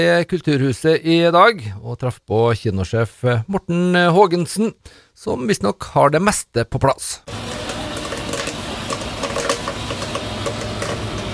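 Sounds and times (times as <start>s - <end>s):
speech: 0.0s - 7.4s
popcorn machine whirring and humming: 7.3s - 11.3s.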